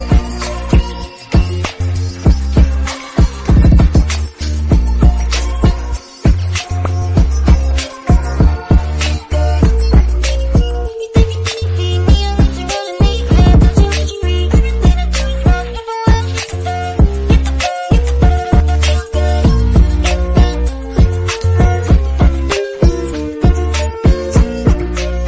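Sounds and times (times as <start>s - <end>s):
instrumental ringtone: 0.0s - 25.2s.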